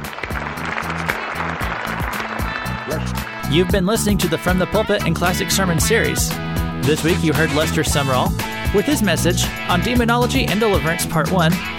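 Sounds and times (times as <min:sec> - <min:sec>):
audience applauding: 0:00.0 - 0:03.4
speech: 0:03.5 - 0:11.7.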